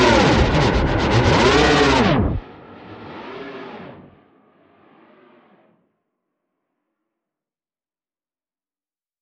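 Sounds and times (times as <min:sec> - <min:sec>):
modulating synth: 0:00.0 - 0:04.0.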